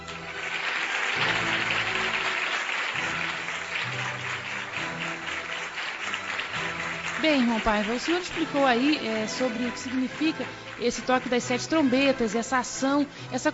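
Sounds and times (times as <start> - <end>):
audience applause: 0.0 - 13.1
speech: 7.2 - 13.5.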